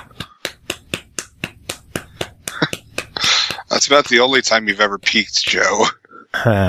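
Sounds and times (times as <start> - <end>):
person clapping away from microphone: 0.0 - 5.3
speech: 3.8 - 6.6.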